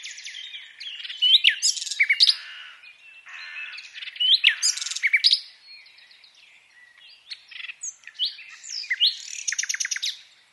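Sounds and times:
common nightingale (Luscinia megarhynchos) song of sharp chirps, trills and whistles: 0:00.0 - 0:10.5.

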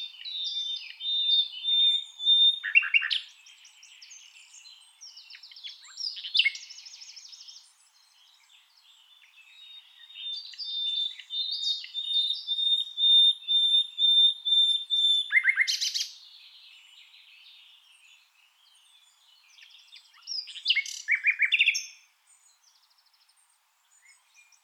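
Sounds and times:
common nightingale Luscinia megarhynchos singing: 0:00.0 - 0:24.6.

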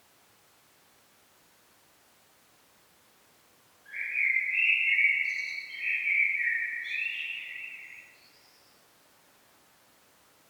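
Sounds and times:
common blackbird singing: 0:03.9 - 0:08.3.

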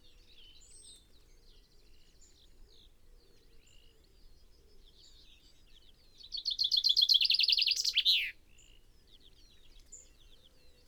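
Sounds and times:
common chaffinch Fringilla coelebs singing: 0:06.4 - 0:08.3.

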